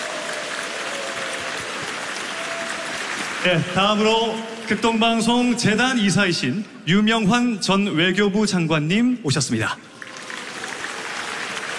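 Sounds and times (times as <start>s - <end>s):
audience applause: 0.0s - 6.0s, 9.9s - 11.7s
speech: 3.4s - 9.9s.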